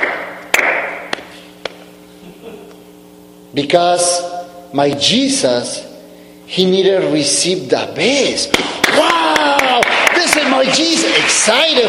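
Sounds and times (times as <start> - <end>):
hand claps: 0.0 - 1.8, 8.5 - 11.6
low steady hum: 0.0 - 11.8
speech: 3.5 - 5.8, 6.5 - 9.2, 9.8 - 11.8.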